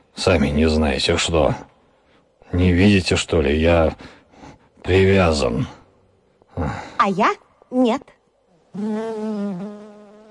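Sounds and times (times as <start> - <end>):
speech: 0.2 - 1.7, 2.5 - 4.2, 4.8 - 5.8, 6.6 - 9.9
housefly buzzing: 8.6 - 10.3.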